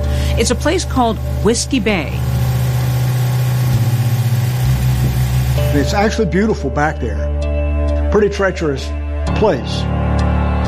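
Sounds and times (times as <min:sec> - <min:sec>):
boat motor idling: 0:00.0 - 0:06.3
speech: 0:00.4 - 0:02.3, 0:05.7 - 0:07.3, 0:08.1 - 0:10.0.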